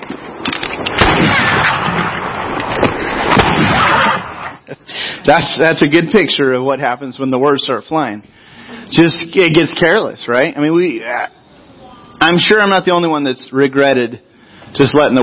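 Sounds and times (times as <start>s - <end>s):
gunshots in a film scene shooting cornbread on the prairie: 0.5s - 4.6s
speech: 5.3s - 11.4s, 12.2s - 15.2s.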